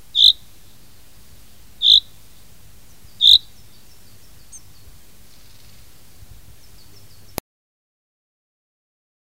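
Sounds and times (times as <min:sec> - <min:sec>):
common chaffinch singing: 0:00.0 - 0:07.4.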